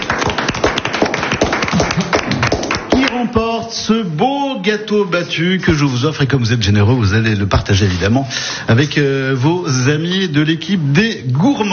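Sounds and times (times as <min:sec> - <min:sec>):
crowd applauding: 0:00.0 - 0:03.2
speech: 0:04.7 - 0:11.7.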